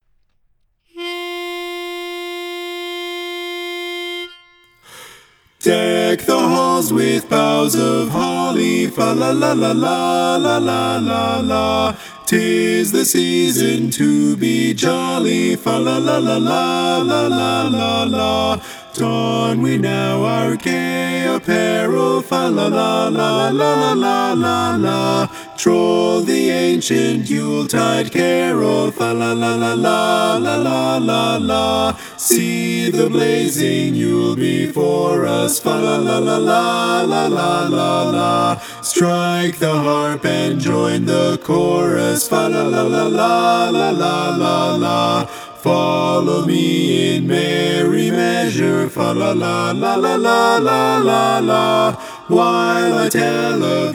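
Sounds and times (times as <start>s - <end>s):
Christmas carol backing track without lead: 1.0s - 53.9s.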